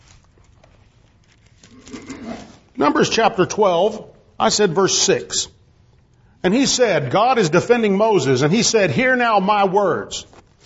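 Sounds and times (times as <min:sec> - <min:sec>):
thin Bible pages being turned: 0:00.0 - 0:02.7, 0:10.3 - 0:10.6
speech: 0:02.8 - 0:05.5, 0:06.4 - 0:10.4.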